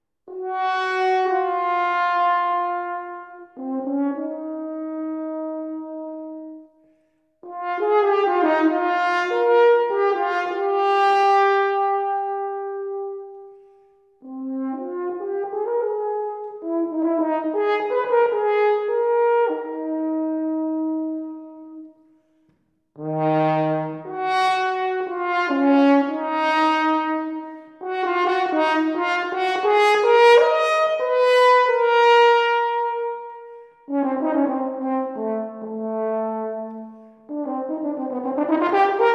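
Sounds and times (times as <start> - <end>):
horn solo: 0.3 - 6.7, 7.4 - 13.6, 14.2 - 21.9, 23.0 - 39.1.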